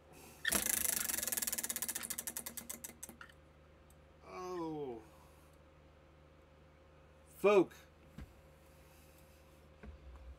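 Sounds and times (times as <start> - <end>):
prize wheel spinning: 0.5 - 2.9
speech: 7.4 - 7.9.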